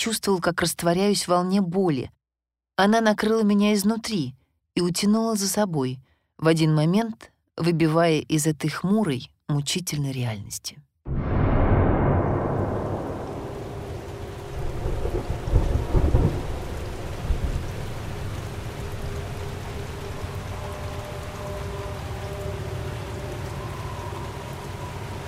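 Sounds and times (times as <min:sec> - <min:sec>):
speech: 0:00.0 - 0:02.2, 0:02.8 - 0:11.2
slanting rain: 0:11.1 - 0:25.2.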